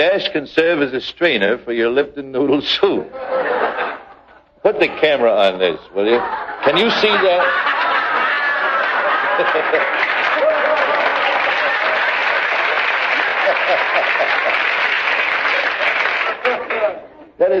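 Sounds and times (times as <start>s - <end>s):
speech: 0.0s - 3.5s, 4.6s - 7.8s, 9.4s - 10.1s
laughter: 3.1s - 17.3s
audience applause: 6.6s - 17.0s.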